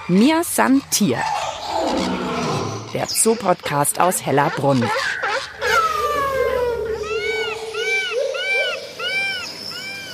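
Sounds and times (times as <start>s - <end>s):
speech: 0.1s - 2.1s, 2.9s - 5.2s
chirping in the background: 4.7s - 10.1s.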